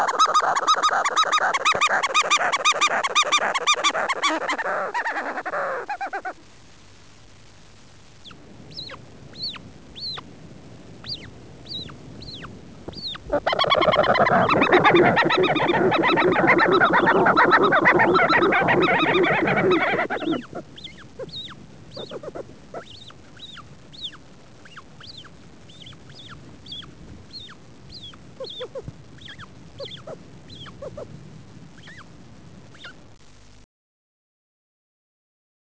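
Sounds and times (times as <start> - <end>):
Fluttering Shearwater calling: 0.0 - 6.4, 13.1 - 23.7.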